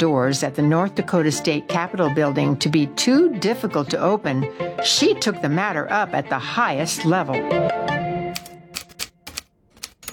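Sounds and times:
speech: 0:00.0 - 0:08.0
typewriter typing a letter: 0:08.4 - 0:10.1.

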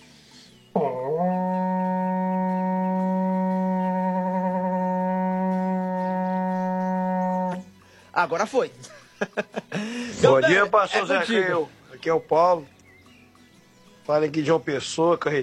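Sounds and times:
berrante cattle horn long brassy blast: 0:00.8 - 0:07.7
speech: 0:08.2 - 0:12.8, 0:14.1 - 0:15.4
laughter: 0:08.8 - 0:11.7.

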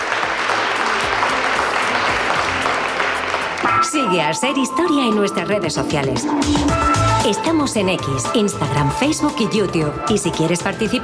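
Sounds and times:
audience applause: 0:00.0 - 0:03.8
speech: 0:03.9 - 0:11.0.

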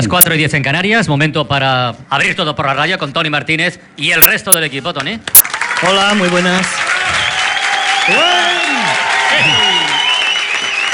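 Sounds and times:
speech: 0:00.0 - 0:06.9, 0:08.0 - 0:09.7
live studio audience applauding at a radio show: 0:05.3 - 0:10.9
audience whoops and whistles: 0:07.0 - 0:10.9.

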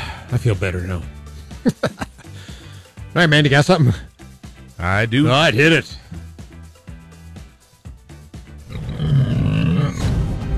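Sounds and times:
speech: 0:00.3 - 0:02.1, 0:03.2 - 0:04.1, 0:04.8 - 0:06.0
laughter: 0:01.6 - 0:02.4
pig sound effect grunting and squealing: 0:08.6 - 0:10.5.

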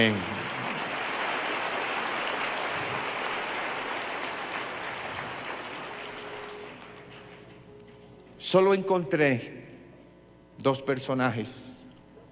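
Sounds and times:
speech: 0:00.0 - 0:00.3, 0:08.5 - 0:09.7, 0:10.6 - 0:11.8
audience applause: 0:00.0 - 0:07.6.

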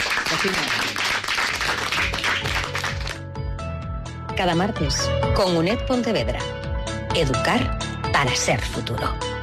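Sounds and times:
children clapping: 0:00.0 - 0:03.2
speech: 0:00.4 - 0:00.9, 0:04.4 - 0:06.6, 0:07.2 - 0:09.3.

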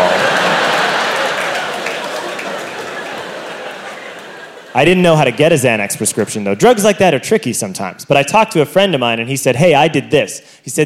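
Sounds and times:
subdued audience applause: 0:00.0 - 0:04.7
laughter: 0:00.0 - 0:06.7
speech: 0:04.8 - 0:10.8.

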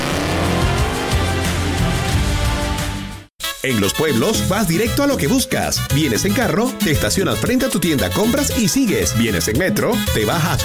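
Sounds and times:
race car accelerating with engine revving hard: 0:00.0 - 0:02.0
speech: 0:03.6 - 0:10.6.

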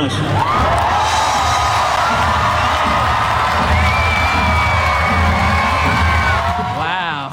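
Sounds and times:
large convention crowd cheering at an announcement: 0:00.0 - 0:07.3.

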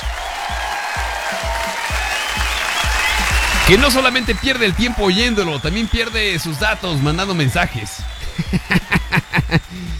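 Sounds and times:
applause: 0:00.0 - 0:09.9
speech: 0:03.7 - 0:08.1
laughter: 0:08.1 - 0:09.9.

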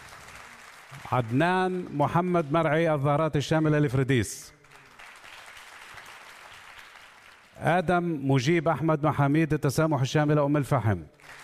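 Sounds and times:
audience applause welcoming ambassadors: 0:00.0 - 0:01.9, 0:04.6 - 0:07.5, 0:11.2 - 0:11.4
speech: 0:01.0 - 0:04.6, 0:07.6 - 0:11.4.

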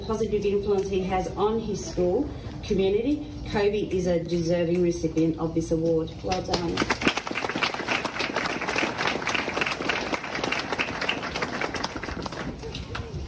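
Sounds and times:
speech: 0:00.1 - 0:07.1
audience applause: 0:06.8 - 0:12.8.

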